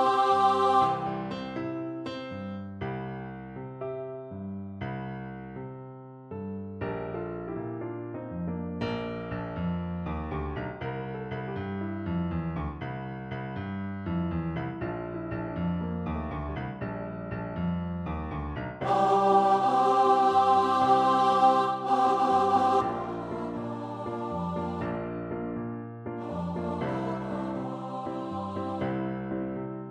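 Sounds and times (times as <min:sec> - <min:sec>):
person singing: 0:00.0 - 0:01.6, 0:18.8 - 0:25.0, 0:26.2 - 0:29.1
piano: 0:00.0 - 0:29.8.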